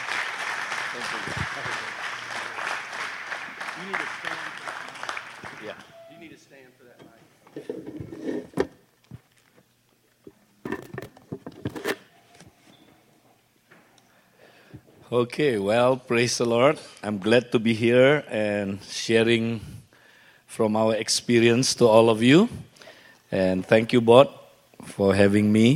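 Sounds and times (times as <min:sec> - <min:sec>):
church congregation clapping to welcome a speaker: 0:00.0 - 0:06.1
speech: 0:01.0 - 0:01.4, 0:03.8 - 0:04.4, 0:15.1 - 0:19.7, 0:20.6 - 0:22.7, 0:23.3 - 0:24.4, 0:25.0 - 0:25.7
knocks and handling noises: 0:06.9 - 0:14.0.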